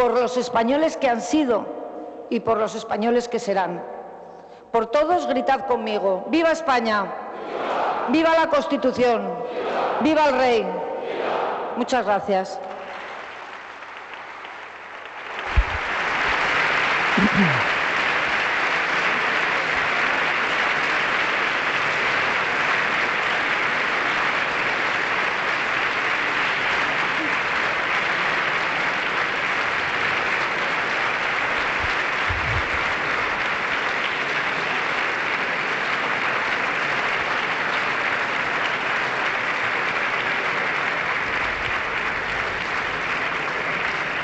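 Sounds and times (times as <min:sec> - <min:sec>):
speech: 0:00.0 - 0:03.9, 0:04.7 - 0:10.8, 0:11.8 - 0:12.7
ovation and applause from seated guests: 0:12.4 - 0:44.2.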